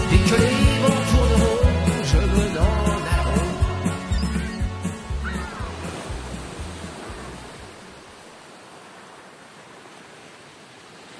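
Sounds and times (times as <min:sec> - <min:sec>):
low thudding rhythm: 0:00.0 - 0:07.6
sea waves washing: 0:00.8 - 0:11.1.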